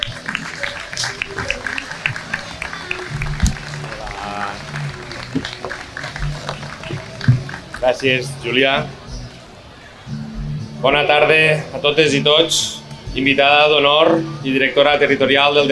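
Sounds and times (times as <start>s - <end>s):
audience applause: 0.0s - 8.6s
speech: 7.9s - 9.0s, 10.8s - 15.7s.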